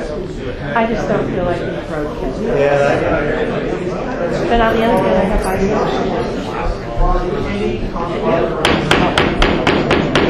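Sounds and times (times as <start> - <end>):
speech: 0.4 - 9.4
gavel banging: 8.6 - 10.2.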